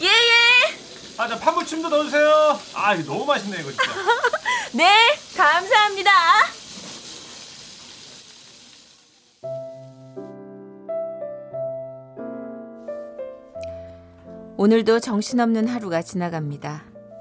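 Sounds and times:
beef ribs sizzling on a grill at a Korean barbecue restaurant: 0.0 - 10.0
speech: 1.2 - 6.5, 14.6 - 16.9
laughter: 3.7 - 4.6.

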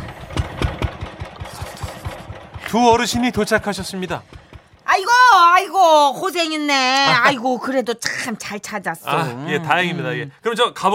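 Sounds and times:
power tiller engine chugging: 0.0 - 5.7
speech: 2.7 - 4.4, 5.4 - 10.9.

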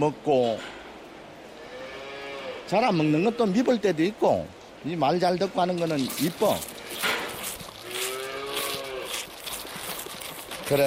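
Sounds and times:
speech: 0.0 - 0.8, 2.7 - 7.0, 10.7 - 10.8
farmyard noise: 0.0 - 10.8
rustle: 0.0 - 10.8
cow mooing on a farm: 1.6 - 2.8, 6.7 - 9.4.

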